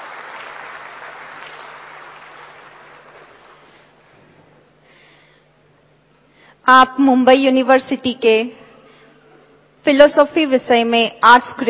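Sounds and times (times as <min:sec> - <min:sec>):
audience applause at a welcome ceremony: 0:00.0 - 0:03.9
speech: 0:06.7 - 0:08.6, 0:09.8 - 0:11.6.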